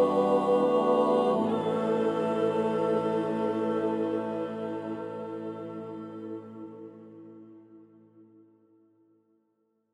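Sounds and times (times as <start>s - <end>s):
first soprano soloist singing a requiem: 0.0s - 7.4s.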